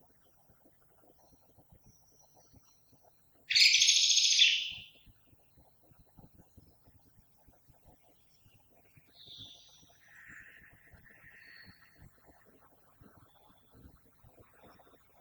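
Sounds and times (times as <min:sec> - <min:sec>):
common blackbird song: 0:01.2 - 0:05.0, 0:08.1 - 0:12.0.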